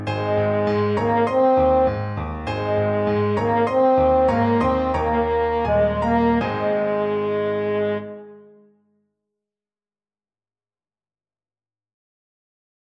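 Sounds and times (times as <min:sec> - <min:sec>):
french horn playing: 0:00.1 - 0:08.7.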